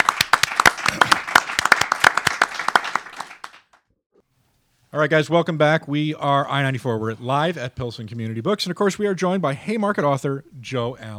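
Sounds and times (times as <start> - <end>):
audience applause for a guest author in a community bookstore: 0.0 - 3.8
speech: 4.9 - 11.1.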